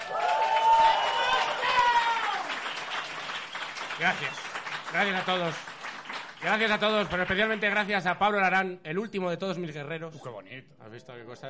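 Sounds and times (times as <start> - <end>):
loud whoops and voices: 0.0 - 2.6
crowd applauding: 0.0 - 8.0
speech: 4.0 - 5.7, 6.4 - 11.4.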